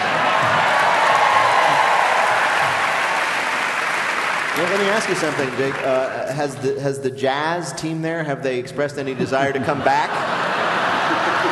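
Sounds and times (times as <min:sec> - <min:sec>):
live audience applause: 0:00.0 - 0:06.4, 0:10.4 - 0:11.4
speech: 0:04.6 - 0:10.3
laughter: 0:09.0 - 0:11.4.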